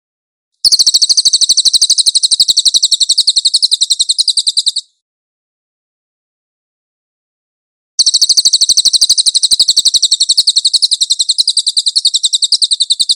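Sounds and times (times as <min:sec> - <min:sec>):
cililin singing a high dense rattle: 0:00.6 - 0:05.0, 0:08.0 - 0:13.1.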